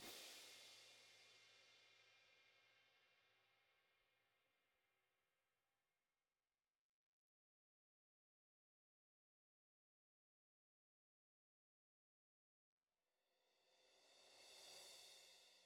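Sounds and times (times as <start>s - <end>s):
interactive music: 0.0s - 5.3s, 13.4s - 15.6s.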